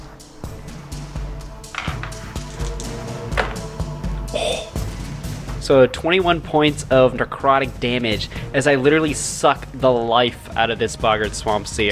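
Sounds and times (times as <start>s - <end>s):
many dice rolling on a table: 1.7s - 2.8s
speech: 5.7s - 11.9s.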